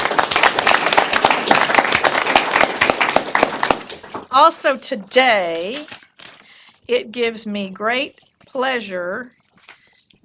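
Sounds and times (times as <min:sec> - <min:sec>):
audience applause for habitat restoration volunteers: 0:00.0 - 0:04.3
speech: 0:04.4 - 0:06.0, 0:06.9 - 0:09.4.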